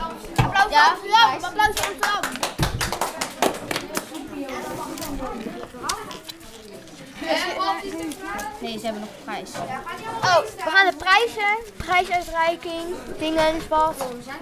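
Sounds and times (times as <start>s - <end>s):
excited children shouting and talking: 0.0s - 14.4s
speech: 0.7s - 2.4s, 7.3s - 14.4s
group clapping in applause: 1.6s - 4.2s.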